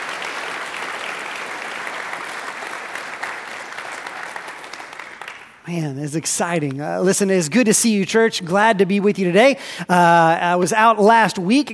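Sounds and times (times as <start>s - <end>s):
audience applause: 0.0s - 6.7s
speech: 5.7s - 11.7s.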